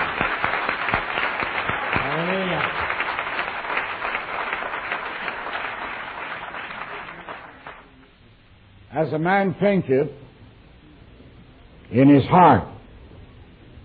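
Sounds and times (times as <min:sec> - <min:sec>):
congregation applauding at Bible Temple church: 0:00.0 - 0:08.0
speech: 0:09.0 - 0:10.2, 0:11.9 - 0:12.7.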